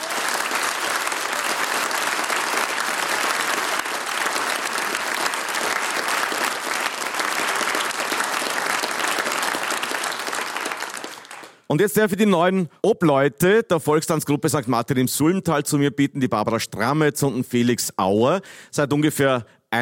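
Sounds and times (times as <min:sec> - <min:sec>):
audience applause: 0:00.0 - 0:11.7
speech: 0:11.8 - 0:19.8.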